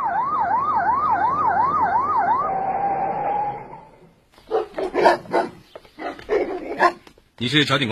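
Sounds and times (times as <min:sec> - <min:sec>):
police vehicle siren warbling: 0:00.0 - 0:04.0
police dog barking: 0:04.4 - 0:07.1.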